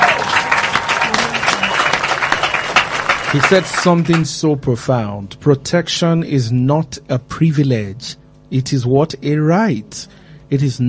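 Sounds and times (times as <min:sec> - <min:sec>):
faint murmur of voices: 0:00.0 - 0:02.1
crowd applause: 0:00.0 - 0:04.3
speech: 0:03.3 - 0:10.8.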